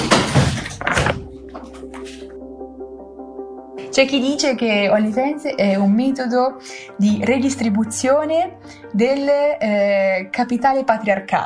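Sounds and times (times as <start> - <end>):
door closing: 0.0 - 1.4
speech: 4.0 - 11.4.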